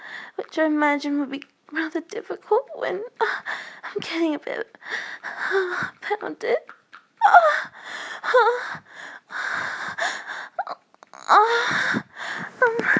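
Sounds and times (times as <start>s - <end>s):
heavy breathing and gasping: 0.0s - 0.4s, 3.2s - 4.0s, 4.8s - 6.1s, 7.2s - 10.7s, 11.4s - 12.9s
speech: 0.4s - 7.7s, 8.3s - 8.9s.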